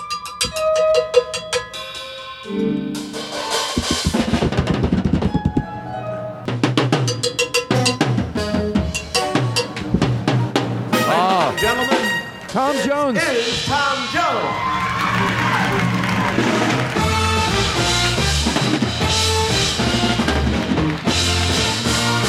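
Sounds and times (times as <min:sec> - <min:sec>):
band drums playing in a nearby theater: 0:00.0 - 0:05.8, 0:06.5 - 0:22.2.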